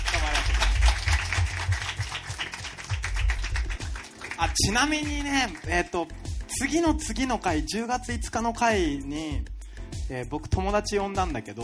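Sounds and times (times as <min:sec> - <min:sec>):
audience applause: 0:00.0 - 0:04.7
speech: 0:04.4 - 0:09.5, 0:10.1 - 0:11.6.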